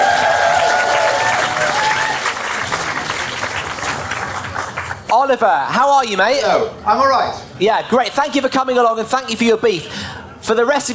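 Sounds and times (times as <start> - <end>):
audience clapping: 0.0 - 5.4
speech: 5.2 - 10.9.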